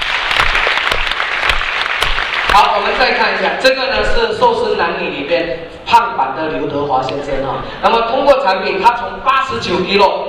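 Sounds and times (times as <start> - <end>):
audience applause at a product presentation meeting: 0.0 - 3.4
speech: 2.5 - 10.2.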